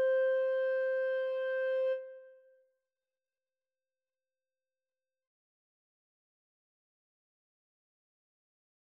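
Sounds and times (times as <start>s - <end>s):
flute and clarinet duet: 0.0s - 2.3s.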